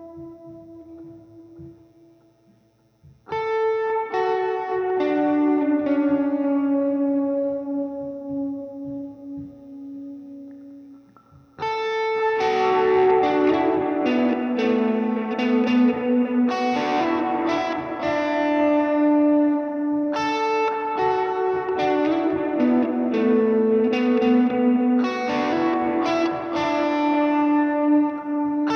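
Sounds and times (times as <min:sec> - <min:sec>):
guitar recorded in mono with SM57 microphone: 0:00.0 - 0:28.7.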